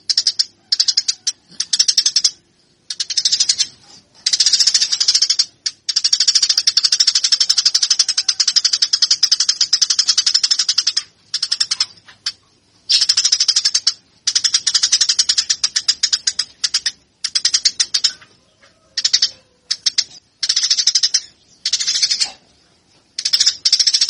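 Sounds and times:
Eurasian tree sparrow giving fighting calls: 0.0s - 24.0s.

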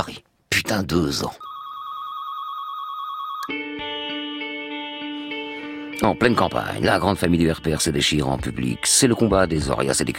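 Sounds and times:
speech: 0.0s - 1.4s, 6.0s - 10.1s
telephone ringing: 1.4s - 3.7s.

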